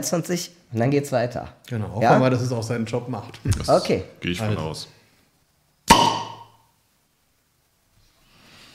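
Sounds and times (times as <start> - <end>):
speech: 0.0 - 5.0
short glassy ringing from a beer bottle: 5.9 - 6.6
swing-top beer bottle popping open: 5.9 - 6.6.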